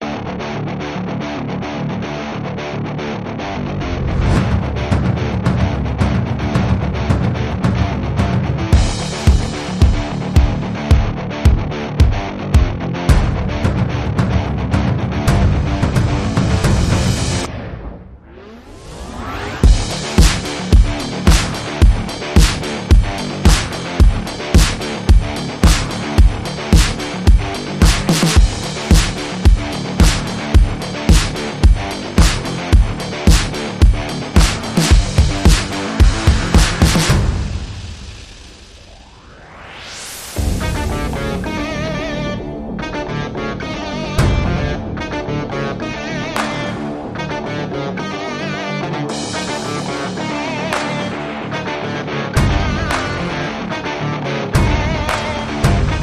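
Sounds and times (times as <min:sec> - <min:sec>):
guitars: 0:00.0 - 0:38.4, 0:40.4 - 0:56.0
drums: 0:04.1 - 0:17.8, 0:18.9 - 0:42.3, 0:44.1 - 0:45.2, 0:49.1 - 0:51.7, 0:52.4 - 0:53.8, 0:54.6 - 0:56.0.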